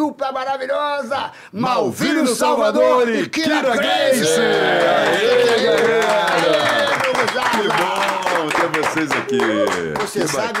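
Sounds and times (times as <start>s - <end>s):
speech: 0.1s - 10.5s
audience applause: 4.2s - 10.5s.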